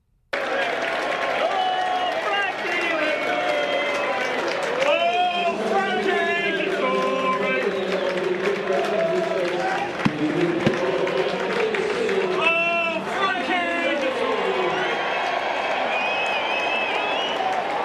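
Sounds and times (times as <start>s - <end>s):
clapping: 0.3s - 17.8s
racecourse crowd cheering and roaring: 0.4s - 17.8s
whistles: 14.7s - 17.8s.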